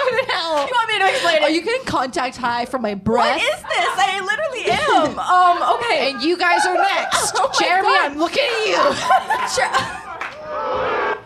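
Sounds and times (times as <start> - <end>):
laughter: 0.0 - 1.6, 3.2 - 11.0
speech: 0.5 - 10.0
audience booing: 5.4 - 11.2.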